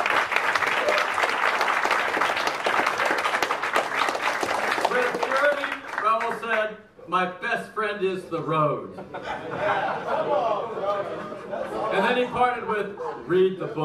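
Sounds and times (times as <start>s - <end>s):
audience applause: 0.0s - 6.4s
speech: 7.1s - 13.8s
laughter: 9.0s - 13.8s.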